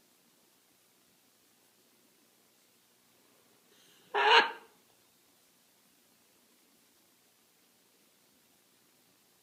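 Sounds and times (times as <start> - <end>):
scarlet macaw Ara macao chicks squawking: 4.1 - 4.7.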